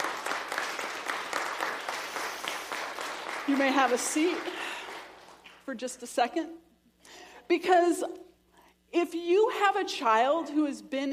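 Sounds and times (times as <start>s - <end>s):
round of applause from students: 0.0s - 5.7s
speech: 3.5s - 4.6s, 5.7s - 6.6s, 7.5s - 8.2s, 8.9s - 11.1s.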